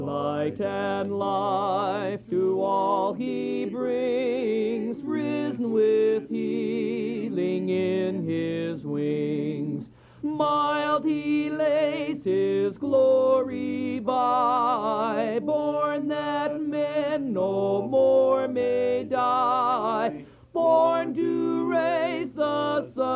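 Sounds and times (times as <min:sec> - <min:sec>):
lead melody of a carol: 0:00.0 - 0:23.1.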